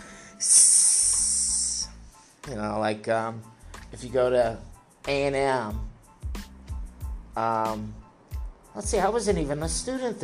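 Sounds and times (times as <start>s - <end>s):
voice imitating a hiss: 0.4s - 2.1s
speech: 2.5s - 5.9s, 7.4s - 8.0s, 8.8s - 10.2s.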